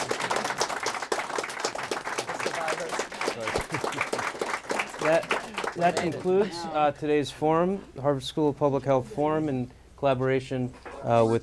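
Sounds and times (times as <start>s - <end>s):
audience applause: 0.0s - 6.5s
speech: 5.0s - 11.4s.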